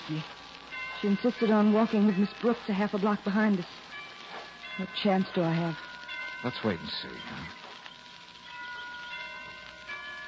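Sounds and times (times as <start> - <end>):
steady hiss: 0.0 - 10.2
speech: 0.1 - 0.4, 1.0 - 3.8, 4.8 - 7.6
tower bells chiming: 0.1 - 10.2.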